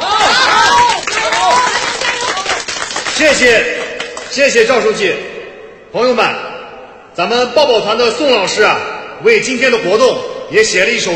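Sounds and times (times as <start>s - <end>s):
crowd applauding: 0.0s - 4.6s
speech: 3.2s - 5.3s, 5.9s - 6.4s, 7.2s - 11.1s.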